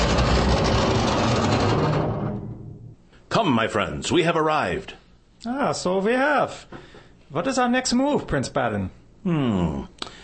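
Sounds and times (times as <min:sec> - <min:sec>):
electric mole burrowing machine breaking through the floor: 0:00.0 - 0:02.8
speech: 0:03.4 - 0:10.2.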